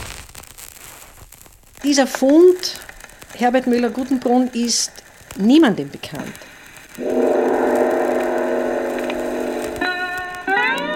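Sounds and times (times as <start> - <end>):
speech: 1.8 - 7.2
foghorn: 7.0 - 10.8.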